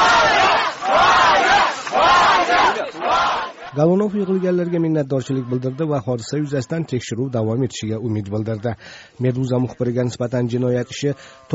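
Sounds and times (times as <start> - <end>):
activists shouting and cheering outside the Moscow police investigative headquarters: 0.0 - 7.5
speech: 3.8 - 11.5.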